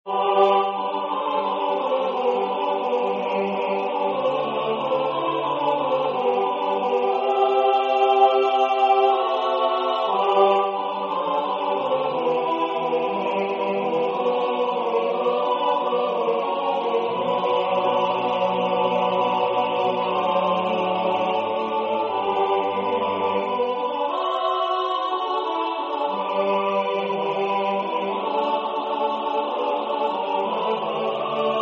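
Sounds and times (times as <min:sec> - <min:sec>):
tenor singing: 0:00.0 - 0:31.5.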